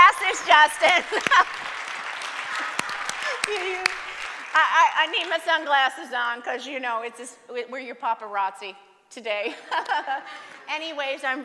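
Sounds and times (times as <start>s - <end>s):
audience applause: 0.0s - 5.4s
laughter: 0.1s - 1.7s, 9.5s - 10.7s
speech: 0.5s - 1.7s, 3.4s - 11.4s.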